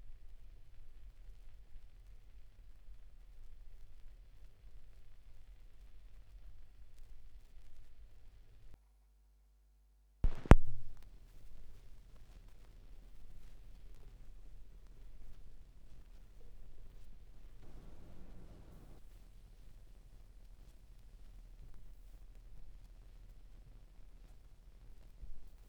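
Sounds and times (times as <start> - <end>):
vinyl record noise at 16 rpm: 0.0 - 8.8, 10.2 - 25.6.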